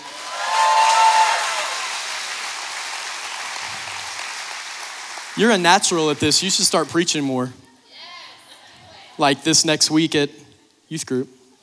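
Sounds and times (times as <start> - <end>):
audience applause: 0.0 - 7.1
speech: 5.4 - 7.6, 9.2 - 11.4.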